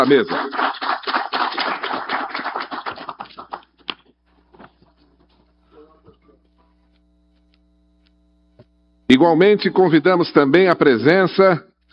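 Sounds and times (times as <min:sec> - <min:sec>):
speech: 0:00.0 - 0:00.7, 0:09.1 - 0:11.7
audience applause: 0:00.0 - 0:03.8.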